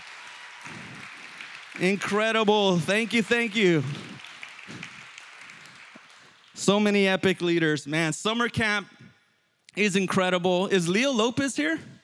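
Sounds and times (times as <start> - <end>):
audience applause: 0.0 - 7.1
speech: 1.8 - 4.1, 6.7 - 9.0, 9.8 - 11.9.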